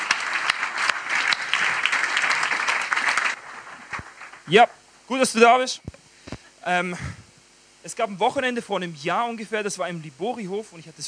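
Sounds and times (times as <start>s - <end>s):
audience applause: 0.0s - 4.6s
speech: 4.5s - 6.0s, 6.6s - 7.2s, 7.8s - 11.0s.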